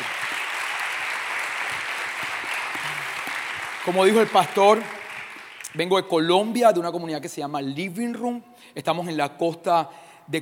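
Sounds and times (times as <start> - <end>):
audience applause: 0.0 - 5.8
speech: 3.9 - 5.0, 5.8 - 10.4.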